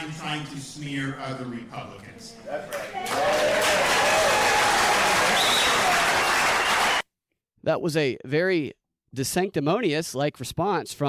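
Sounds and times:
speech: 0:00.3 - 0:04.3, 0:07.6 - 0:11.0
crowd cheering and clapping: 0:02.6 - 0:07.0
whistle-like tone: 0:05.4 - 0:05.9.

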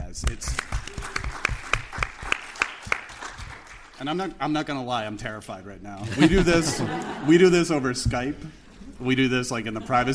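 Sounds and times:
speech: 0:00.1 - 0:00.7, 0:04.0 - 0:10.1
audience applause: 0:00.5 - 0:04.0
laughter: 0:06.0 - 0:10.1.

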